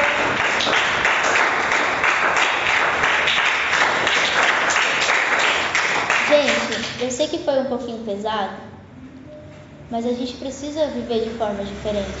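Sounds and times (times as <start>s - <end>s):
applause: 0.0s - 7.1s
speech: 7.2s - 8.7s, 9.9s - 12.1s.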